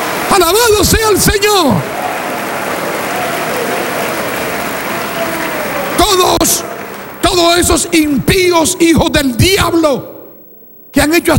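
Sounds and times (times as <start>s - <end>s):
audience clapping hands: 0.0s - 8.0s
speech: 0.4s - 2.0s, 6.1s - 6.7s, 7.3s - 10.1s, 10.9s - 11.3s.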